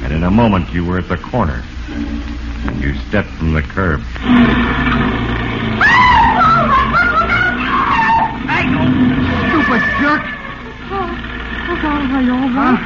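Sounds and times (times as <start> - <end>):
speech: 0.2 - 5.0, 11.8 - 12.8
car tyres skidding and squealing: 4.2 - 12.8.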